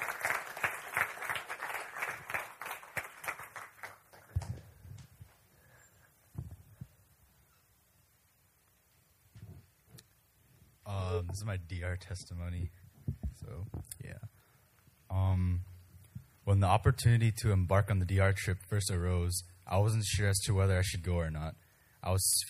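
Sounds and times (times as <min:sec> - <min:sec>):
audience applause: 0:00.0 - 0:05.1
speech: 0:11.3 - 0:12.8, 0:13.5 - 0:14.3, 0:15.2 - 0:15.7, 0:16.5 - 0:22.4
low thumps: 0:13.0 - 0:13.9.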